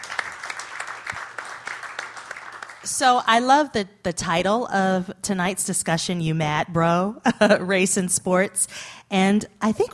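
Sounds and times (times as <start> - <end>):
sparse audience applause: 0.0 - 2.9
speech: 2.8 - 9.9.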